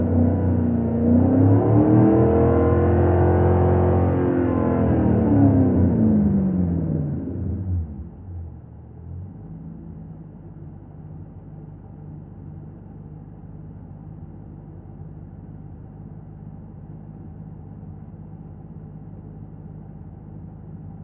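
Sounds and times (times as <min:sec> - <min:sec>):
Ford Mustang GT 500 KR engine starting revving idling and stopping from interior: 0:00.0 - 0:10.2.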